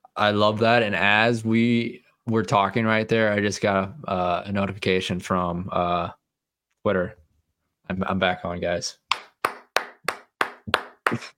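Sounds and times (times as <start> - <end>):
speech: 0.2 - 6.2, 6.8 - 7.2, 7.9 - 9.0, 10.7 - 11.3
hand claps: 9.1 - 11.3.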